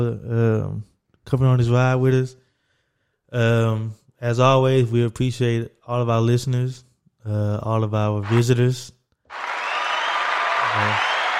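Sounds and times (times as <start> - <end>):
speech: 0.0 - 2.4, 3.3 - 9.5, 10.8 - 11.1
round of applause: 9.3 - 11.3.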